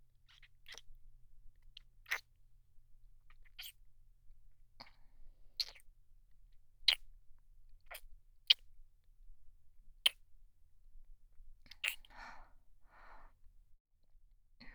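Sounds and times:
deep kissing with saliva ASMR: 0:00.3 - 0:00.9, 0:01.8 - 0:02.3, 0:03.3 - 0:03.8, 0:04.8 - 0:05.0, 0:05.6 - 0:05.9, 0:06.9 - 0:07.1, 0:07.8 - 0:08.7, 0:11.7 - 0:12.2.

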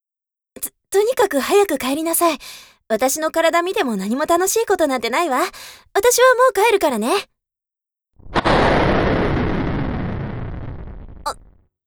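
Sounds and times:
speech: 0:00.9 - 0:07.3, 0:11.2 - 0:11.4
thunder crack and rumble: 0:08.2 - 0:11.5.

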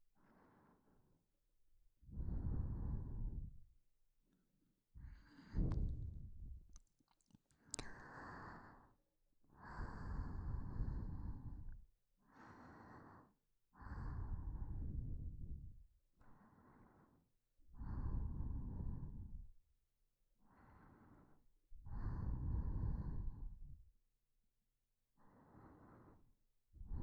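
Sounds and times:
person breathing in sleep: 0:00.2 - 0:01.2, 0:02.0 - 0:03.6, 0:05.0 - 0:06.5, 0:07.7 - 0:19.5, 0:20.4 - 0:23.8, 0:25.2 - 0:27.0.

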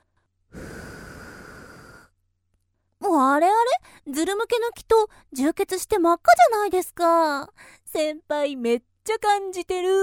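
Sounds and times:
breath blown softly into ear: 0:00.5 - 0:02.2
speech: 0:03.2 - 0:10.0.

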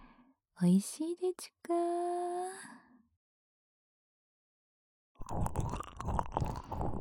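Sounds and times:
speech: 0:00.6 - 0:02.0
wet sucking and smacking mouth sounds on a fingertip: 0:05.2 - 0:06.9.

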